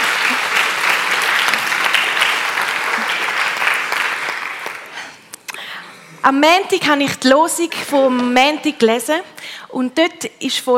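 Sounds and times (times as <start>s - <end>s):
audience applause: 0.0s - 5.1s
speech: 6.2s - 10.7s.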